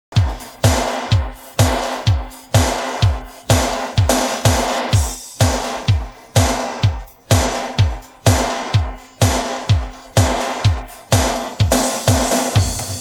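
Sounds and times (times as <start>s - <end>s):
drum pattern: 0.0s - 12.9s.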